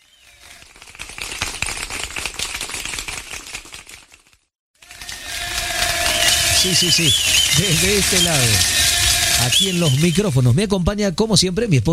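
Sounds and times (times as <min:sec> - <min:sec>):
crowd applauding: 0:00.4 - 0:03.7, 0:04.8 - 0:10.5
speech: 0:06.6 - 0:11.9.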